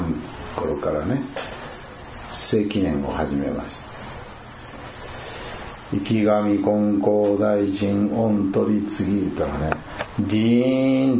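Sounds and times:
speech: 0:00.2 - 0:01.6, 0:02.4 - 0:03.8, 0:05.9 - 0:11.1
bell cricket song: 0:00.2 - 0:09.1.

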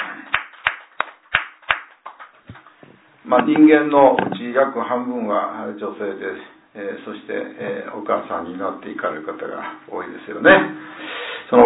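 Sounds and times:
hand clapping: 0:00.0 - 0:02.8
speech: 0:03.2 - 0:11.6.

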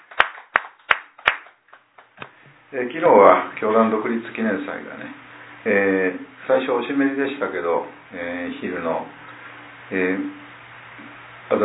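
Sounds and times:
congregation hand claps at a Konko church celebrating a birthday: 0:00.0 - 0:02.4
speech: 0:02.7 - 0:09.2, 0:09.9 - 0:10.4.

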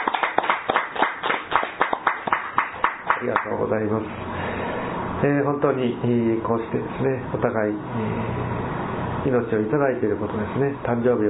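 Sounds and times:
hands clapping in celebration of a birthday greeting: 0:00.0 - 0:03.6
speech: 0:03.2 - 0:04.4, 0:05.2 - 0:08.6, 0:09.2 - 0:11.2.

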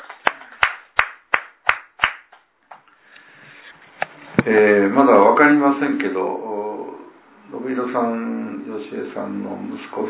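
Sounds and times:
applause: 0:00.0 - 0:02.3
speech: 0:04.4 - 0:06.5, 0:07.5 - 0:10.0.

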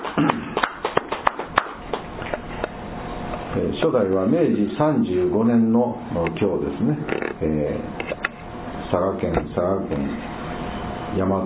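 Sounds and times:
hands clapping in celebration: 0:00.0 - 0:02.4
speech: 0:03.8 - 0:08.2, 0:08.9 - 0:10.3, 0:11.1 - 0:11.4.

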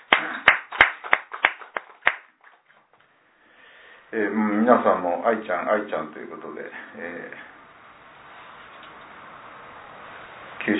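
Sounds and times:
audience applause: 0:00.0 - 0:02.2
speech: 0:04.1 - 0:07.5.

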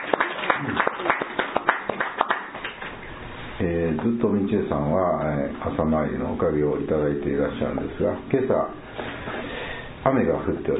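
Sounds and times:
applause: 0:00.0 - 0:03.0
speech: 0:03.6 - 0:09.1, 0:10.0 - 0:10.7.

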